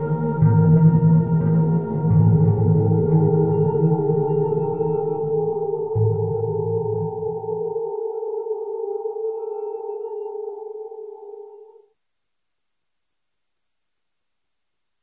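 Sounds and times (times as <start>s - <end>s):
horror music: 0.0s - 11.9s.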